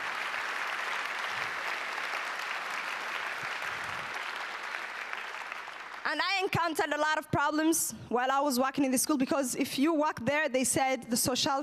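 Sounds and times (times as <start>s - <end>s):
audience applause: 0.0s - 6.2s
speech: 6.1s - 11.6s.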